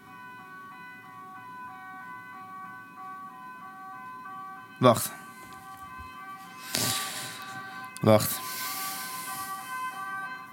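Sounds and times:
ambulance siren: 0:00.0 - 0:10.5
low continuous traffic rumble: 0:04.6 - 0:10.5
speech: 0:04.8 - 0:05.2, 0:08.0 - 0:08.5.

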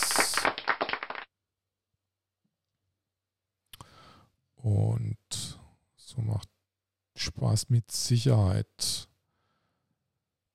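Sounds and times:
applause: 0:00.0 - 0:01.3
speech: 0:04.6 - 0:05.2, 0:07.4 - 0:09.0.

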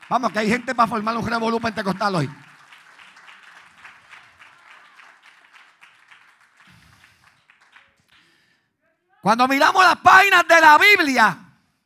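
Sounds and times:
audience applause: 0:00.0 - 0:08.4
speech: 0:00.1 - 0:02.5, 0:09.2 - 0:11.4.

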